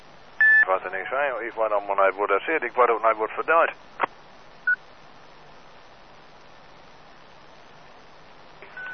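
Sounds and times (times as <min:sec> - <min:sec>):
static hiss: 0:00.0 - 0:08.9
burst-on burst-off radio beep: 0:00.4 - 0:03.7
speech: 0:00.7 - 0:04.2.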